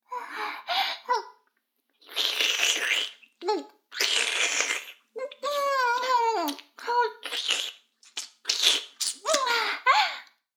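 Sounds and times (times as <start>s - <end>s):
oral sex sounds: 2.0s - 9.9s.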